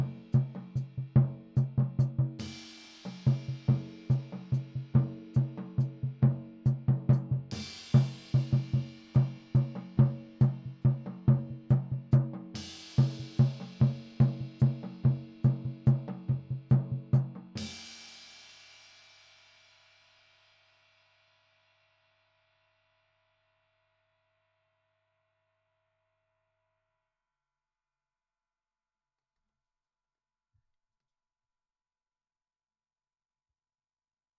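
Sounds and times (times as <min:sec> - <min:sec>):
floor tom drum: 0:00.0 - 0:18.0.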